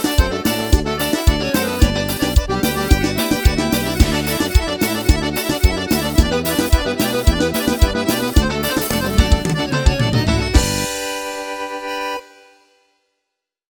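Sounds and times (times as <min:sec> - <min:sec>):
forro instrumental music: 0:00.0 - 0:13.0.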